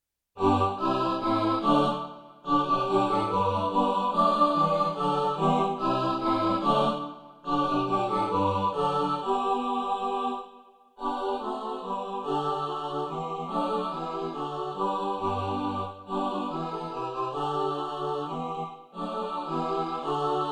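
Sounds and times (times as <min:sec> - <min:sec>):
SATB four-part choir singing: 0:00.4 - 0:20.4.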